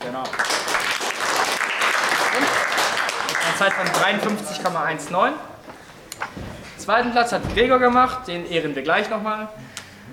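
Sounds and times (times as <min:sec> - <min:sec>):
applause: 0:00.0 - 0:04.8
speech: 0:03.6 - 0:05.5, 0:06.9 - 0:09.7.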